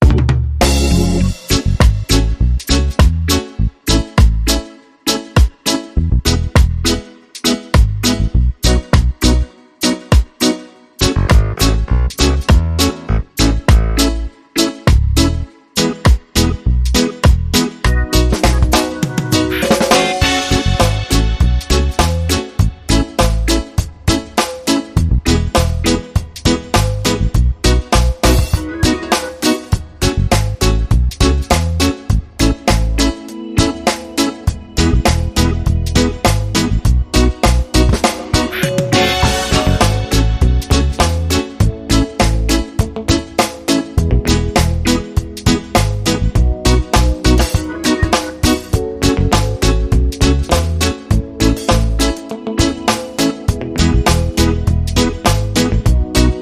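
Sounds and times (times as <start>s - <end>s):
rhythm section: 0.0s - 4.6s, 5.4s - 5.8s, 6.6s - 9.3s, 10.1s - 56.4s
horns: 17.9s - 21.8s, 38.4s - 40.8s.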